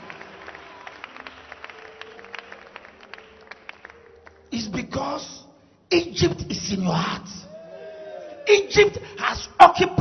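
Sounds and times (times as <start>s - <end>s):
scattered clapping from a few people: 0.0s - 4.4s
speech: 4.5s - 7.5s, 8.5s - 9.9s.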